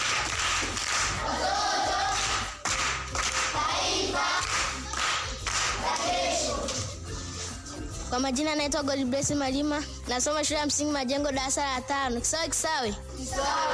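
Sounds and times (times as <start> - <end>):
group applause for a young quiz contestant at a primary-school quiz: 0.0 - 7.0
speech: 8.2 - 13.7.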